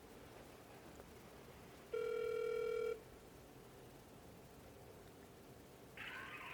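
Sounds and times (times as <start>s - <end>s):
phone line hiss: 1.9s - 3.0s
telephone ringback tone on a phone line: 1.9s - 3.0s.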